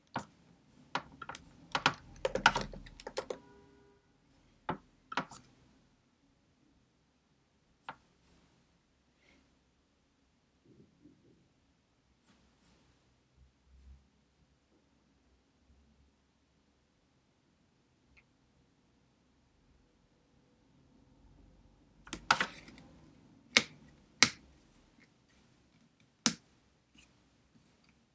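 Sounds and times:
computer keyboard tapping: 1.0 - 3.5, 22.1 - 22.9, 23.5 - 24.4.

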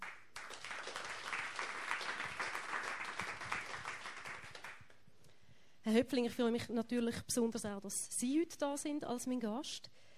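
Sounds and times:
audience applause: 0.0 - 4.8
speech: 5.9 - 10.0.

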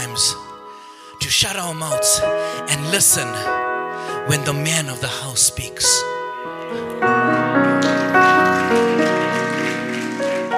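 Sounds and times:
speech: 0.1 - 0.4, 1.3 - 7.1
audience clapping hands: 6.7 - 10.5.

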